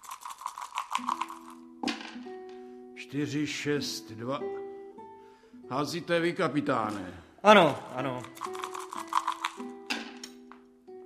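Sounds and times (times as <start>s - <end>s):
dice being thrown: 0.0s - 2.2s, 8.0s - 10.2s
speech: 3.1s - 4.6s, 5.7s - 8.5s.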